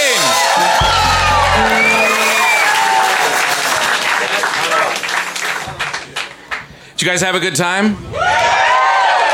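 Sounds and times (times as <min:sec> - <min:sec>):
crowd cheering and whooping: 0:00.1 - 0:04.9, 0:08.1 - 0:09.3
crowd applauding: 0:00.3 - 0:06.7, 0:08.3 - 0:09.3
speech: 0:07.0 - 0:08.4.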